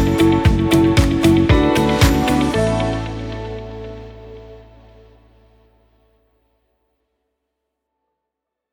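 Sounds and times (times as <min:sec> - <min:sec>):
inspiring corporate intro music: 0:00.0 - 0:05.5.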